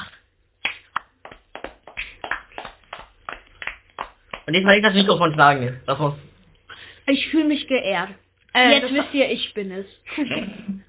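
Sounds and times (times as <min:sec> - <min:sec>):
small group clapping: 0:00.0 - 0:04.7
speech: 0:04.5 - 0:06.3, 0:07.1 - 0:10.7.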